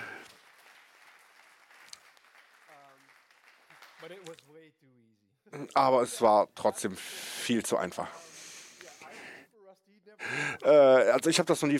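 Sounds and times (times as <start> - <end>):
audience applause: 0.0 - 4.4
speech: 4.0 - 11.7.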